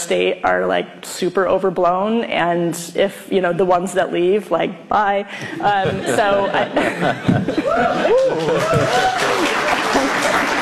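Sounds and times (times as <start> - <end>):
speech: 0.0 - 9.6
laughter: 5.4 - 10.6
audience cheering and clapping: 7.2 - 10.6.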